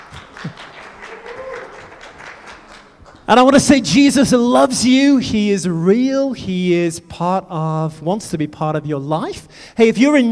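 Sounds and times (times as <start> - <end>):
audience applause: 0.0 - 3.3
speech: 0.4 - 0.7, 3.3 - 10.3.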